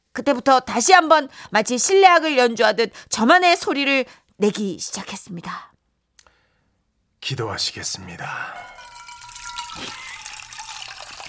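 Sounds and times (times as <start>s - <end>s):
speech: 0.2s - 5.7s, 7.2s - 8.7s, 9.8s - 10.0s
water being filled into a container: 8.6s - 11.2s.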